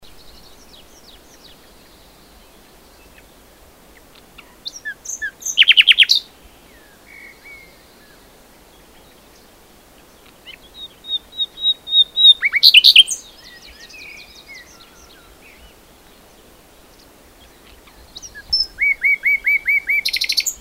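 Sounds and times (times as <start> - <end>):
common nightingale song of whistles and rattling trills: 4.4 - 8.2, 10.7 - 15.7, 17.8 - 20.5.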